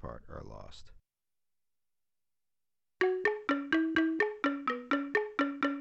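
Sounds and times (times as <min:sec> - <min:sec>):
African xylophone music: 0:03.0 - 0:05.8.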